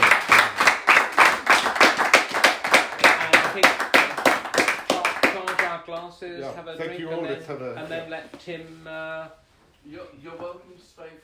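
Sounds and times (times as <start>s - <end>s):
audience applause at a book talk: 0.0s - 5.7s
speech: 6.2s - 11.2s.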